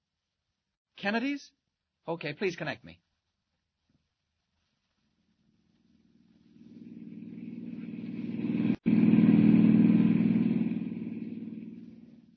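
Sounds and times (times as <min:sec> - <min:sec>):
speech: 0:01.0 - 0:03.0
car driving off down a dusty road: 0:06.0 - 0:12.3.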